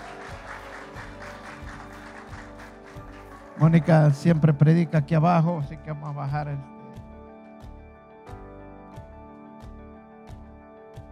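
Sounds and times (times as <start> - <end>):
audience applause: 0.0 - 4.2
speech: 3.6 - 6.8.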